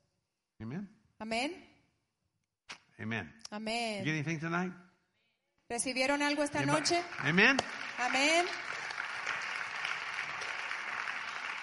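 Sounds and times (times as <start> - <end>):
speech: 0.6 - 1.7, 3.0 - 4.8, 5.7 - 8.7
young women clapping: 6.4 - 11.6.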